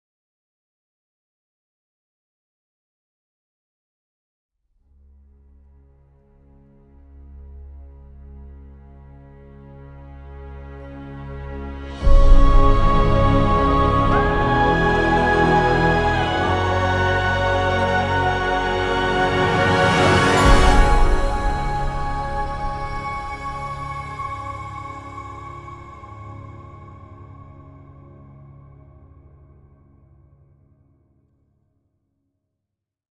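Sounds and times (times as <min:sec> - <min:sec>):
musical stinger: 0:12.0 - 0:27.3.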